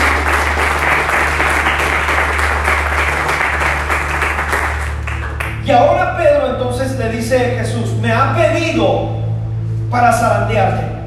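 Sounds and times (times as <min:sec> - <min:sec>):
crowd applauding: 0:00.0 - 0:05.8
low steady hum: 0:00.0 - 0:11.0
speech: 0:09.9 - 0:10.9.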